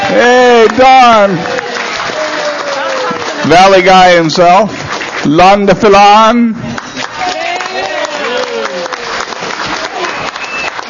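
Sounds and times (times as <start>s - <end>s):
cheers and scattered voices: 0.0s - 4.5s, 6.9s - 9.1s
audience applauding departing visitors: 0.0s - 6.0s, 6.6s - 10.8s
speech: 0.2s - 1.6s, 3.5s - 6.7s.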